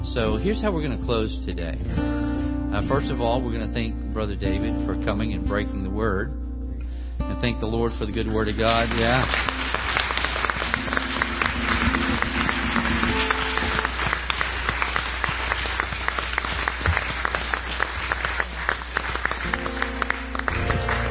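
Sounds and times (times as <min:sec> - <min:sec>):
speech: 0:00.1 - 0:06.4, 0:07.2 - 0:09.6
applause: 0:08.1 - 0:21.0
Haitian drum beat: 0:08.9 - 0:20.0.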